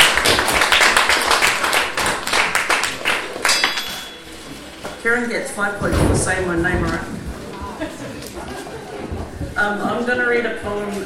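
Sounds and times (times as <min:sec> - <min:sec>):
audience clapping to welcome a speaker to the stage: 0:00.0 - 0:03.6
speech: 0:05.0 - 0:07.3, 0:09.6 - 0:11.0
laughter: 0:07.2 - 0:09.6.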